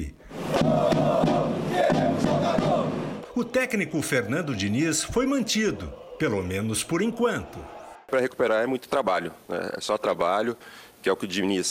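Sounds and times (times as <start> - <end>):
large crowd of football fans chanting in protest: 0.3 - 8.1
sharp claps or bangs: 0.4 - 3.4
speech: 3.4 - 11.6.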